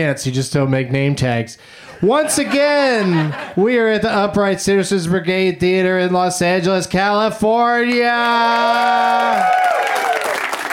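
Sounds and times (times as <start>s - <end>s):
speech: 0.0s - 9.9s
laughter: 2.0s - 4.6s
audience at the Upright Citizens Brigade Theater in Los Angeles clapping and cheering: 8.0s - 10.7s.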